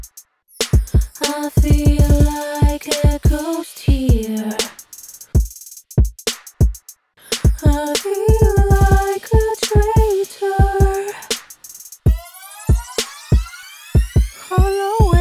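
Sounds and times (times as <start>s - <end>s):
hip hop mix with female vocals: 0.8s - 4.6s, 7.6s - 11.3s, 12.1s - 15.2s.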